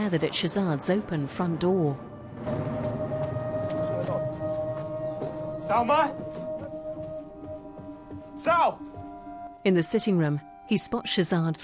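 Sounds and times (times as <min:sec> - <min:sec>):
speech: 0:00.0 - 0:02.9, 0:05.7 - 0:06.4, 0:08.4 - 0:08.9, 0:09.6 - 0:11.6
plane engines droning overhead: 0:00.0 - 0:07.9.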